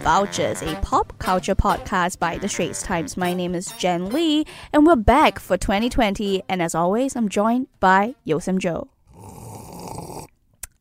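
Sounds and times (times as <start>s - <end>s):
speech: 0.0s - 8.9s
person sipping and slurping tea: 9.1s - 10.4s.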